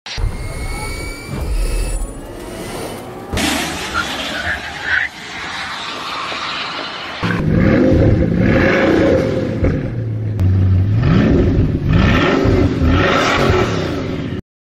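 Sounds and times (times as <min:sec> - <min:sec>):
Rimac Nevera electric car: 0:00.1 - 0:14.4.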